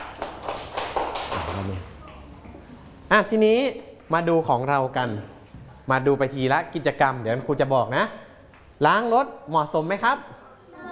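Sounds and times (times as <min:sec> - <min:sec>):
children clapping for a classmate: 0:00.0 - 0:02.2
speech: 0:01.6 - 0:01.9, 0:03.1 - 0:08.2, 0:08.8 - 0:10.4.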